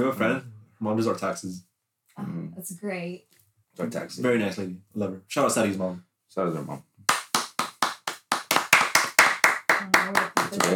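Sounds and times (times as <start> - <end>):
speech: 0.0 - 6.9, 10.1 - 10.7
hand clapping: 7.0 - 10.7.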